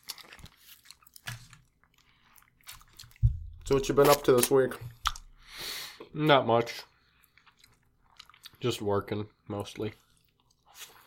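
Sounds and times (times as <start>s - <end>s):
biting and chewing caramel chocolate candy: 0.0s - 5.4s, 7.2s - 8.7s, 10.0s - 11.0s
speech: 3.7s - 5.0s, 6.2s - 6.9s, 8.6s - 10.0s.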